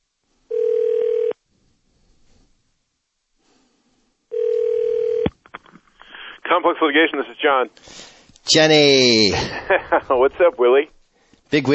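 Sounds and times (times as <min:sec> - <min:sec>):
telephone call ringing through: 0:00.5 - 0:01.4, 0:04.3 - 0:05.3
speech: 0:06.6 - 0:11.7
laughter: 0:09.3 - 0:10.5.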